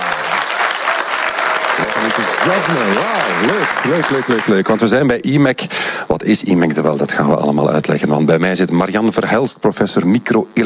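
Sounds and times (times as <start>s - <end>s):
live audience applauding: 0.0s - 5.1s
speech: 2.1s - 10.6s.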